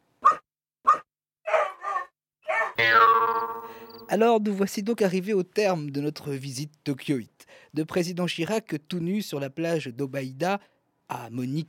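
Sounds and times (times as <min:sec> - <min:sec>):
dog barking: 0:00.2 - 0:02.8
speech: 0:02.8 - 0:11.6.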